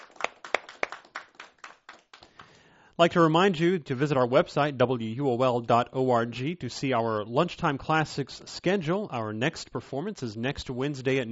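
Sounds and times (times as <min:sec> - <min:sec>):
sparse audience hand clapping after a concert performance: 0:00.0 - 0:02.6
speech: 0:03.0 - 0:11.2.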